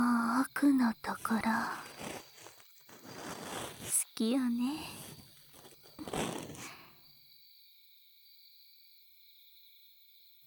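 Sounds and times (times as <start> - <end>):
soothing ear cleaning ASMR sounds: 0.2 - 6.9.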